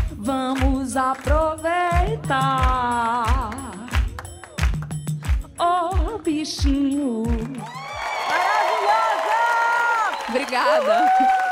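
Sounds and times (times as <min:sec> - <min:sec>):
applause: 0:00.0 - 0:01.4, 0:02.0 - 0:05.5, 0:07.3 - 0:11.4
speech: 0:00.2 - 0:03.2, 0:06.4 - 0:07.8
crowd cheering: 0:07.6 - 0:11.4.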